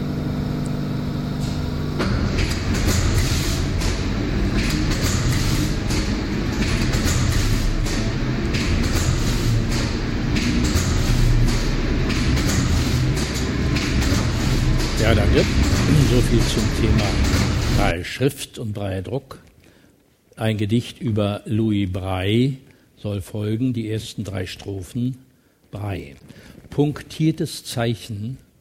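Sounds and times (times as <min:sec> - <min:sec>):
automatic printing press running: 0:00.2 - 0:17.9
speech: 0:18.0 - 0:19.5, 0:20.4 - 0:28.4.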